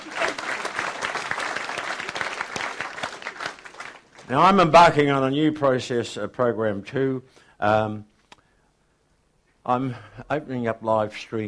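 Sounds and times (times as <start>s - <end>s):
audience clapping: 0.0s - 4.8s
speech: 4.3s - 8.1s, 9.6s - 11.4s.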